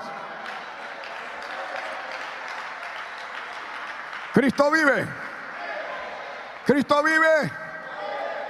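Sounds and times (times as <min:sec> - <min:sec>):
audience clapping hands: 0:00.0 - 0:05.6
speech: 0:04.4 - 0:05.2, 0:06.6 - 0:07.6.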